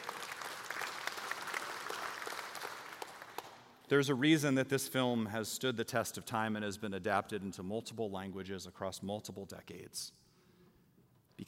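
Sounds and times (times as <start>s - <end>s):
audience applauding: 0.0s - 3.7s
speech: 3.9s - 10.2s.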